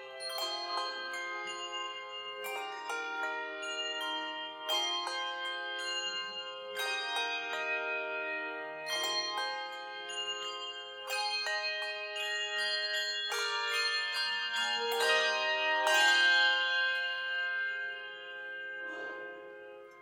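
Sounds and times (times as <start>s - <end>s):
carillon bells: 0.0s - 20.0s.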